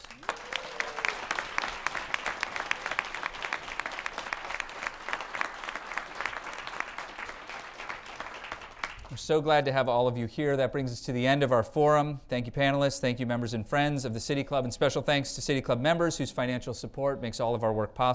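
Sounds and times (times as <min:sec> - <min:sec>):
audience applause: 0:00.0 - 0:09.2
speech: 0:09.2 - 0:18.1.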